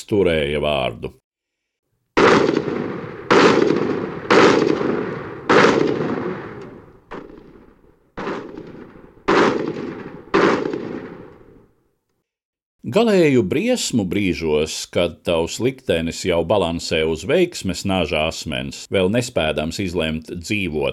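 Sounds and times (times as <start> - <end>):
speech: 0.1 - 1.2, 12.9 - 20.9
continuous automatic rifle and machine-gun fire: 2.2 - 11.6.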